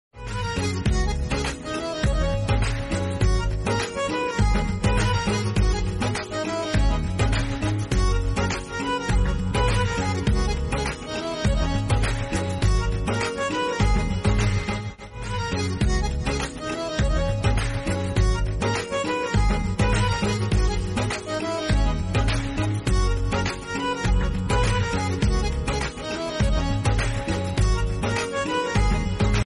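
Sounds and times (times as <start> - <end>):
instrumental music: 0.2 - 29.4.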